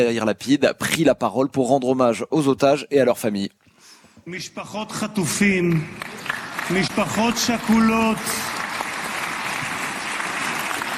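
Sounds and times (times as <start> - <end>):
speech: 0.0 - 3.6, 4.2 - 8.5
thunderous applause for hostages and their families: 6.0 - 10.9.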